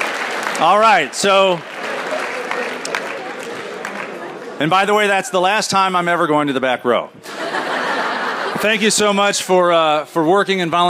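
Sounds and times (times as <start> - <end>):
audience round of applause: 0.0 - 4.6
speech: 0.6 - 1.7, 4.6 - 7.3, 8.6 - 10.8
laughter: 7.2 - 9.4.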